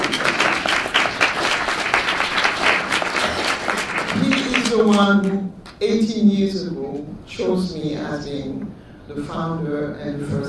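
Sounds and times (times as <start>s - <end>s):
audience applause: 0.0s - 5.0s
speech: 4.8s - 10.4s.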